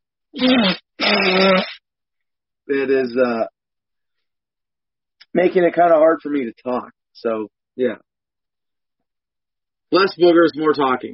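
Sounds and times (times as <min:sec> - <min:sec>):
speech: 0:00.3 - 0:01.8, 0:02.7 - 0:03.6, 0:05.3 - 0:08.1, 0:09.9 - 0:11.1
nose blowing: 0:00.4 - 0:01.8.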